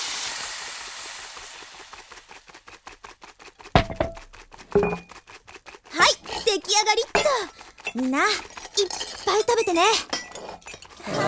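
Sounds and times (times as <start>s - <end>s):
fresh cream being whisked: 0.2s - 11.2s
speech: 6.9s - 10.2s.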